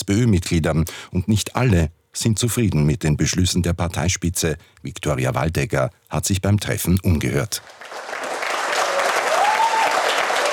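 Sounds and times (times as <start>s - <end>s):
speech: 0.1s - 7.9s
applause: 7.6s - 10.5s.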